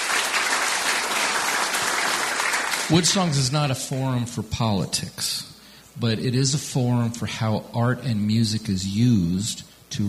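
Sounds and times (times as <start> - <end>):
audience applauding a drummer back onto the stage: 0.0 - 3.5
speech: 2.9 - 10.0.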